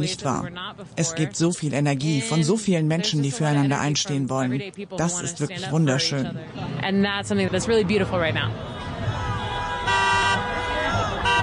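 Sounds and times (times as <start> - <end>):
speech: 0.0 - 8.8
protest crowd cheering and chattering: 0.0 - 11.4
street noise: 0.0 - 11.4
passing cars honking in support: 8.5 - 11.4.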